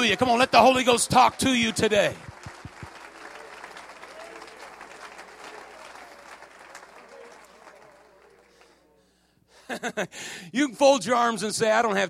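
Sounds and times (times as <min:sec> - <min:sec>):
speech: 0:00.0 - 0:02.3, 0:09.7 - 0:12.0
audience clapping: 0:00.0 - 0:09.0.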